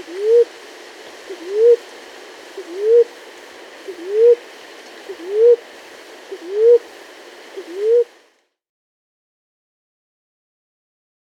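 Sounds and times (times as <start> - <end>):
Maroon-chested ground-dove Claravis mondetoura calling: 0.0 - 0.6, 1.3 - 1.9, 2.5 - 3.2, 3.8 - 5.7, 6.3 - 6.9, 7.5 - 8.2.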